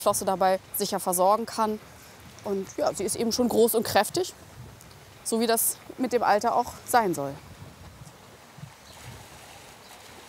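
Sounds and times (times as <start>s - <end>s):
speech: 0.0s - 4.6s, 5.3s - 7.5s
water rushing into rewilding pool: 8.8s - 10.2s.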